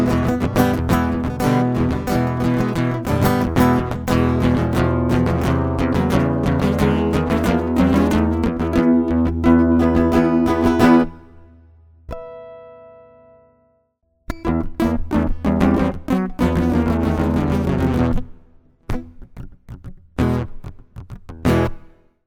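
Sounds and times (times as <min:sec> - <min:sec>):
acoustic music: 0:00.0 - 0:13.6, 0:14.3 - 0:18.3.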